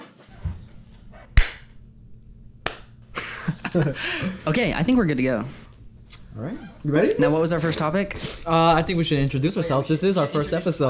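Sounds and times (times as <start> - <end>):
low hum: 0.0 - 10.8
hand claps: 1.4 - 1.7, 2.6 - 2.9
laughter: 3.2 - 4.6
speech: 3.7 - 5.6, 6.4 - 10.8.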